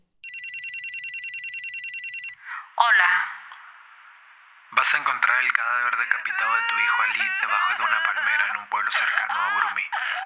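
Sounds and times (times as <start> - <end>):
telephone ringing: 0.2 - 2.4
speech: 4.9 - 10.2.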